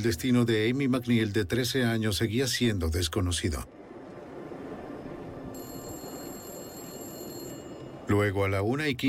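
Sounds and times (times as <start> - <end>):
speech: 0.0 - 3.8, 8.1 - 9.0
public payphone ringing at a service station in the early morning: 5.6 - 8.1.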